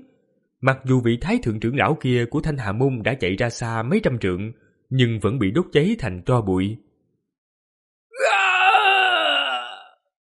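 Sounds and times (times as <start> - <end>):
speech: 0.6 - 6.8
agonized wailing screams: 8.2 - 10.0.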